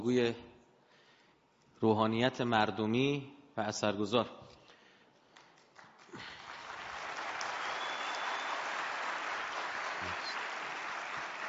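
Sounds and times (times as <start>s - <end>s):
speech: 0.0s - 0.5s, 1.8s - 4.5s, 6.1s - 6.3s
audience applause at a gathering greeting a respected cleric: 5.8s - 11.4s.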